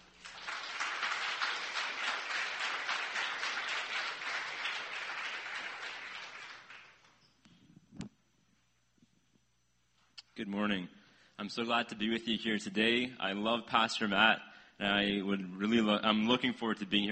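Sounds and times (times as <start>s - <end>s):
church congregation applauding in welcome: 0.0s - 7.2s
speech: 10.4s - 17.1s.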